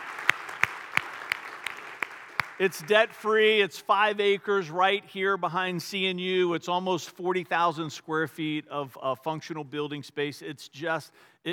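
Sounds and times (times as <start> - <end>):
audience applause: 0.0 - 3.0
speech: 2.6 - 11.5.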